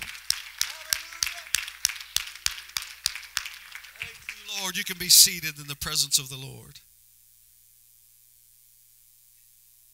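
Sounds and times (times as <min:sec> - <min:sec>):
audience clapping hands in praise: 0:00.0 - 0:06.5
speech: 0:04.7 - 0:06.9.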